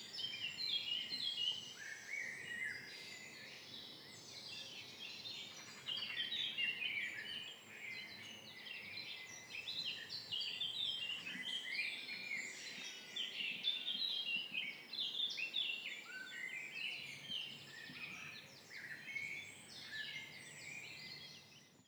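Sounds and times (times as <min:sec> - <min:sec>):
birds dawn chorus at a quarry entrance: 0:00.0 - 0:21.8.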